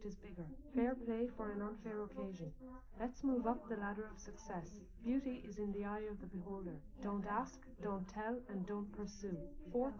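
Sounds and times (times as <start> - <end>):
woman's voice: 0.0 - 9.9.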